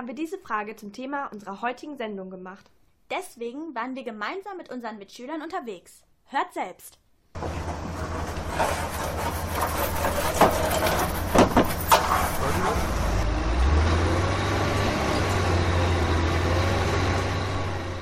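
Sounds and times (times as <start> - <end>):
speech: 0.0 - 7.6
construction noise: 7.4 - 18.0.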